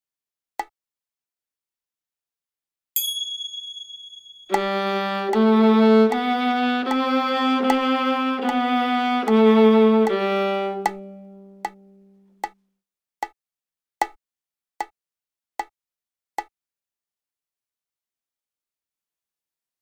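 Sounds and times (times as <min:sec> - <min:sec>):
viola G string played: 0:04.5 - 0:12.2.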